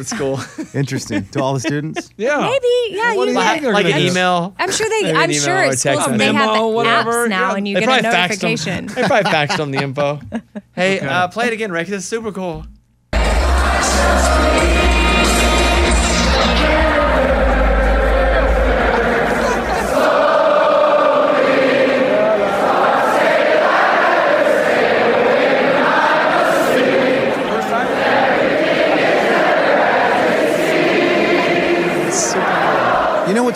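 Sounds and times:
laughter: 0.0s - 2.5s, 7.8s - 10.9s, 17.9s - 20.9s
speech: 0.0s - 12.7s
huge stadium crowd singing together: 13.2s - 33.5s.

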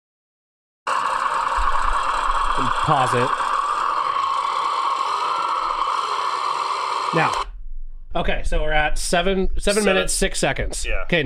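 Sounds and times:
engine buzzing high drone at the start of a runaway: 0.9s - 7.5s
speech: 2.6s - 3.4s, 7.1s - 7.4s, 8.2s - 11.2s.

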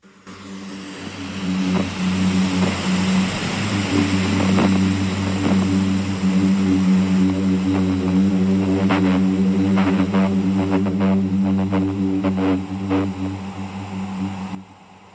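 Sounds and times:
booming sand dune vibration: 1.1s - 14.6s.

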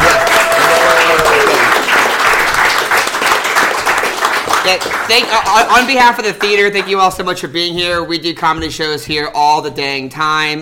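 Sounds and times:
audience applause: 0.0s - 7.0s
speech: 4.7s - 10.6s.

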